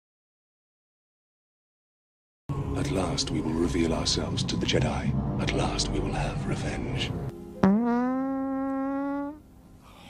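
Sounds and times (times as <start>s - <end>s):
speech: 2.8s - 7.3s
fart: 7.6s - 9.4s.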